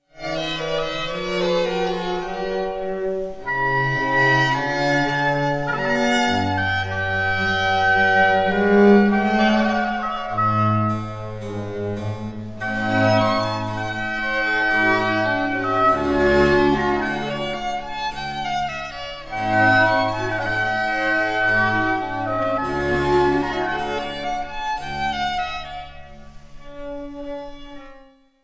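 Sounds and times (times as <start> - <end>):
two violins cello and orchestra in G major: 0.2 - 28.1.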